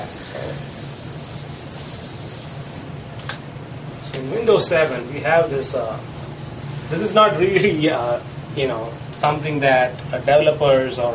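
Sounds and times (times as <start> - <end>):
whiteboard being erased: 0.0 - 2.9
speech: 4.2 - 6.2, 6.9 - 11.1.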